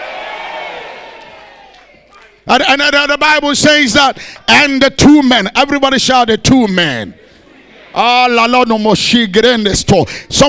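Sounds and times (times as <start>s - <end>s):
church congregation shouting yay: 0.0s - 2.4s
speech: 2.5s - 7.2s, 7.9s - 10.4s.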